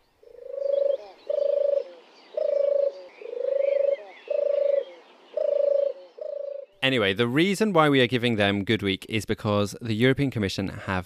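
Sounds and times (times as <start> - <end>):
European turtle dove purring: 0.2 - 6.8
speech: 6.8 - 11.0.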